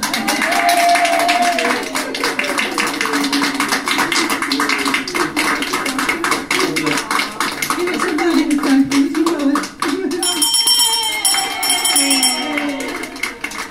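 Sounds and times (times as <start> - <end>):
chemotherapy unit staff applauding: 0.0 - 13.6
bell ringing in a chemotherapy unit: 10.2 - 13.6.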